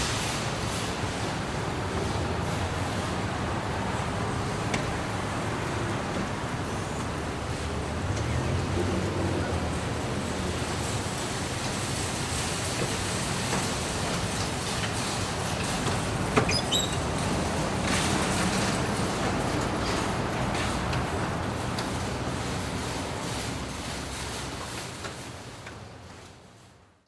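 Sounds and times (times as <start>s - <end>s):
traffic by a supermarket parking lot: 0.0s - 27.0s
supermarket shopping carts in a store parking lot: 7.4s - 26.2s.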